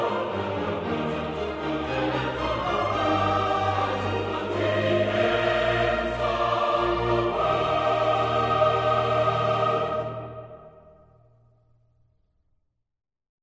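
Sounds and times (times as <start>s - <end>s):
symphony orchestra playing: 0.0s - 10.7s.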